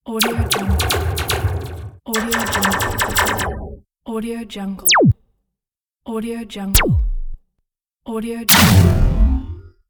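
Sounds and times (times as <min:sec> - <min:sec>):
laser shot: 0:00.2 - 0:03.8, 0:04.8 - 0:05.2, 0:06.8 - 0:07.4, 0:08.5 - 0:09.6.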